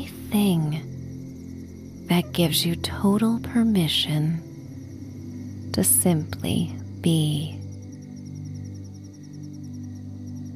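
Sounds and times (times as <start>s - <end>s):
crickets chirping at night: 0.0s - 10.5s
speech: 0.3s - 0.8s, 2.1s - 4.5s, 5.7s - 7.6s.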